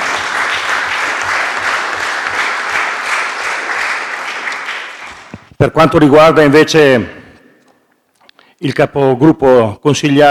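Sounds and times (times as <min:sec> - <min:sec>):
audience applause: 0:00.0 - 0:05.3
speech: 0:05.6 - 0:07.2, 0:08.6 - 0:10.2.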